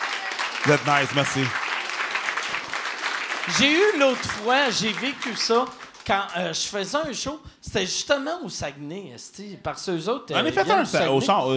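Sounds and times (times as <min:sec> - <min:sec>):
audience applause: 0:00.0 - 0:06.6
speech: 0:00.6 - 0:01.6, 0:03.4 - 0:11.5.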